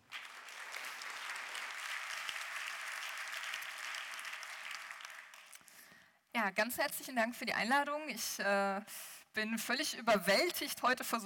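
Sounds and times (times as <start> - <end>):
room full of people applauding: 0.0 - 5.9
speech: 6.4 - 11.2.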